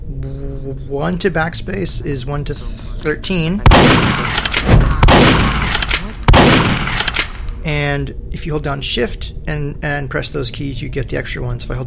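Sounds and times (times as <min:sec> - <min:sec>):
speech: 0:00.2 - 0:05.4, 0:07.9 - 0:11.8
video game shotgun firing: 0:03.6 - 0:07.5.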